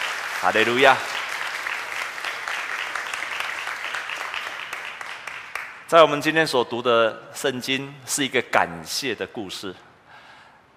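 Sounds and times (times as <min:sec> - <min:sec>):
warm audience applause: 0:00.0 - 0:05.8
speech: 0:00.4 - 0:01.2, 0:05.9 - 0:09.9.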